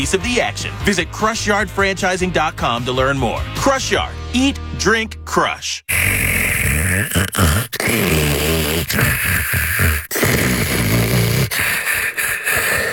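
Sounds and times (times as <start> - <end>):
speech: 0.0 - 6.2, 7.0 - 11.0
loud rough snoring: 5.9 - 12.9.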